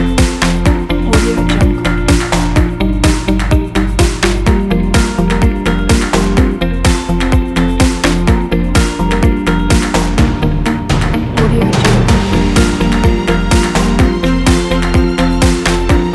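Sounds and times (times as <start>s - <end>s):
optimistic corporate motivational technology music: 0.0s - 16.1s.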